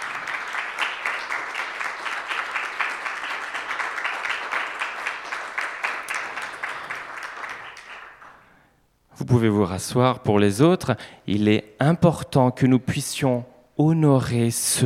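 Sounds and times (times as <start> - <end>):
audience applause: 0.0 - 8.3
speech: 9.2 - 14.8.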